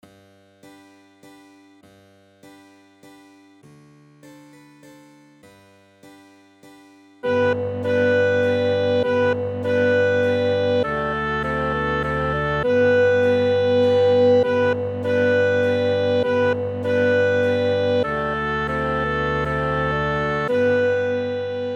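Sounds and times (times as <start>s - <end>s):
minuet for clarinet: 7.2s - 21.7s.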